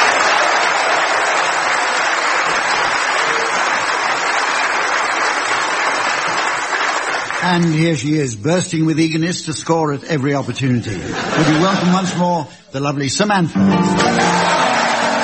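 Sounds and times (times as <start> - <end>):
studio audience applause at the Playhouse Theatre in Oxford welcoming the panellists: 0.0 - 7.8, 13.8 - 15.2
speech: 7.5 - 14.6
laughter: 10.3 - 12.4, 13.9 - 15.2.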